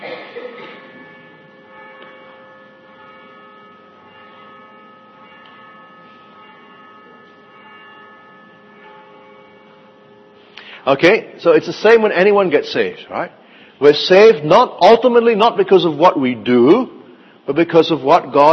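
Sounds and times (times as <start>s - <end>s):
bell ringing: 0.4s - 12.6s
speech: 10.8s - 18.5s.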